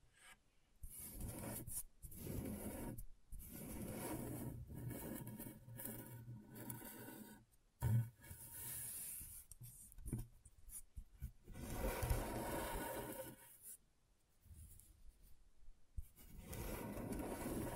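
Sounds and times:
tool scratching across scratchboard: 0.9 - 7.3, 11.5 - 13.4, 16.2 - 17.7.

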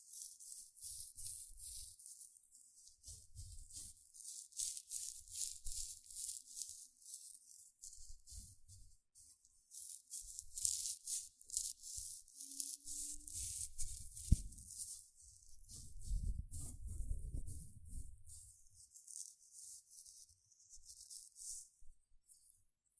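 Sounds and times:
gentle scratching: 0.0 - 22.6
soft low thumps and rubbing: 13.0 - 18.5.

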